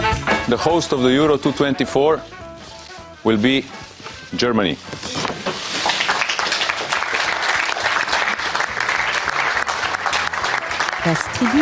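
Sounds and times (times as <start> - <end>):
speech: 0.5 - 2.4, 3.2 - 5.2, 11.0 - 11.5
applause at the Euro 2024 host announcement: 5.8 - 11.5.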